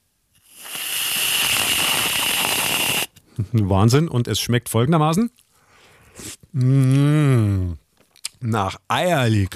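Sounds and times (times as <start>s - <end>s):
whipped cream spraying from aerosol can: 0.4s - 3.1s
speech: 3.6s - 5.4s, 6.6s - 7.8s, 8.4s - 9.5s.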